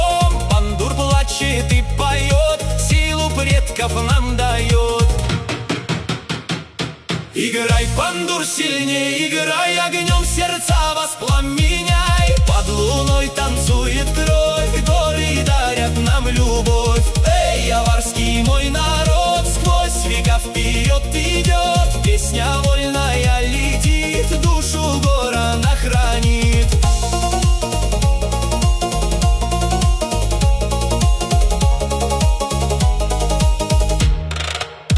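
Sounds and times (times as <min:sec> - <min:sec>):
voice with pandur music: 0:00.0 - 0:06.1, 0:07.3 - 0:34.8.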